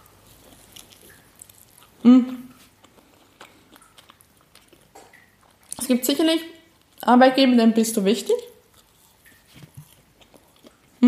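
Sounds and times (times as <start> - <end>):
chewing fluffy pancakes: 0.0 - 6.0, 8.5 - 11.0
speech: 2.0 - 2.4, 5.9 - 8.5.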